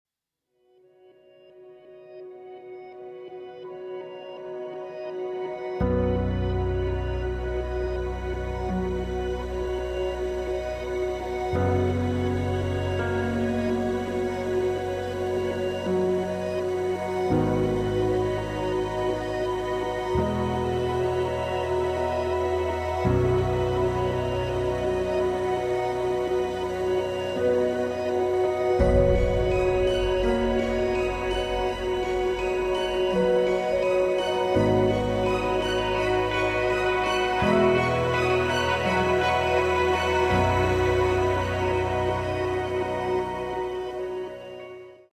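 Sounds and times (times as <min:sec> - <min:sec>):
instrumental music: 0:01.2 - 0:45.1.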